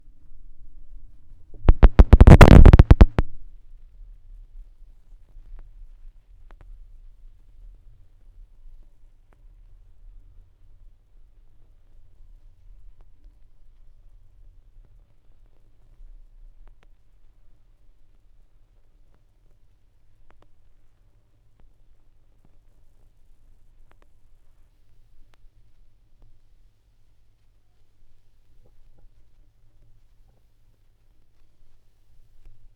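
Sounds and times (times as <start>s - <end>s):
vinyl record noise: 0.0s - 3.5s.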